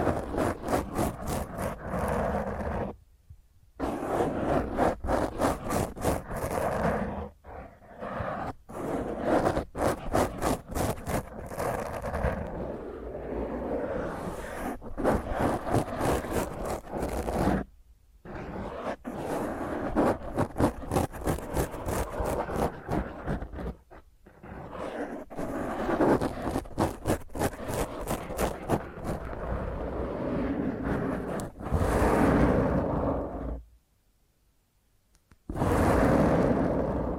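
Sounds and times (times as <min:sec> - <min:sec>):
intense rough microphone scratching with hand and nails: 0:00.0 - 0:03.0, 0:03.8 - 0:33.7, 0:35.5 - 0:37.1.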